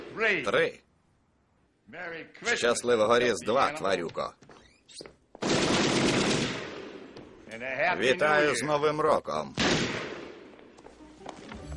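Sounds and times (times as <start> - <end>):
speech: 0.2 - 0.8, 1.9 - 6.1, 7.5 - 10.1
machine gun fire in an audio drama: 5.4 - 7.2.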